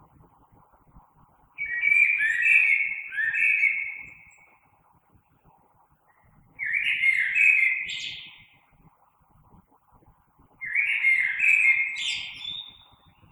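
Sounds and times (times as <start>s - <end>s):
Common blackbird song of melodious warbling phrases: 1.6s - 4.6s, 6.1s - 8.6s, 10.6s - 13.3s.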